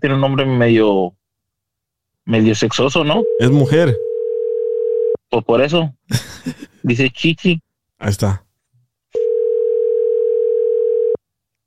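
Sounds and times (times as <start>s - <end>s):
speech: 0.0s - 1.2s, 2.3s - 4.1s, 5.3s - 8.4s
telephone dial tone while a call is being placed: 4.0s - 5.2s, 9.2s - 11.2s
laughter: 6.1s - 6.8s.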